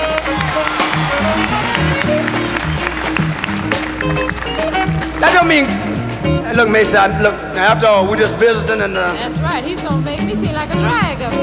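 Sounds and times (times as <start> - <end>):
audience applause: 0.0 - 5.8
speech: 5.4 - 5.8, 6.5 - 11.4.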